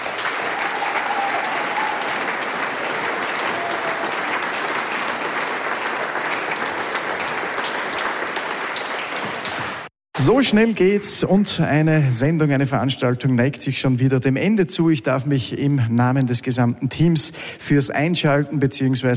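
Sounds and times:
audience applause: 0.0s - 9.9s
speech: 10.3s - 19.1s.

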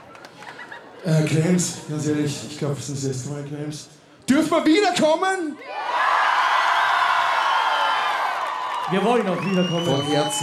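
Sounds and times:
laughter: 0.0s - 2.4s
speech: 1.0s - 6.0s, 8.9s - 10.4s
concert audience applauding and cheering at the festival by the Steiner Tor in Krems: 5.8s - 10.4s.

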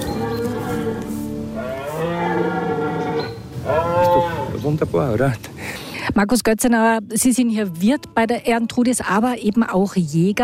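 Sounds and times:
red deer stag roaring during rut: 0.0s - 4.6s
speech: 4.7s - 5.5s, 6.2s - 10.4s.

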